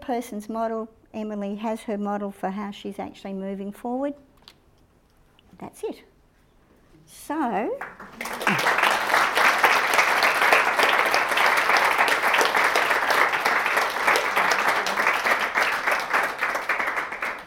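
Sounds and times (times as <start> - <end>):
speech: 0.1 - 4.3, 5.6 - 6.1, 7.1 - 8.8
audience clapping: 7.8 - 17.4.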